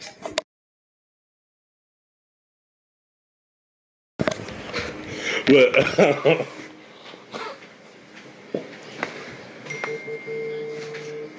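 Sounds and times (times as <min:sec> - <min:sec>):
laughter: 0:05.2 - 0:06.7
speech: 0:05.5 - 0:06.6
phone vibrating: 0:09.7 - 0:11.3.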